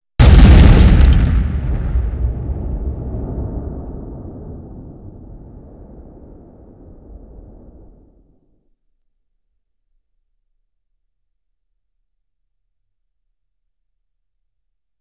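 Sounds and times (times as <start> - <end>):
explosion: 0.2 - 8.4.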